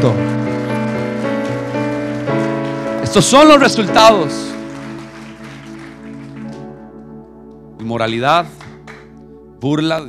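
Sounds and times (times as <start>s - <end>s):
speech: 0.0s - 0.3s, 3.1s - 4.5s, 7.9s - 8.6s, 9.6s - 10.0s
audience applause: 0.0s - 6.8s
sustained keyboard or organ chords: 0.0s - 10.0s.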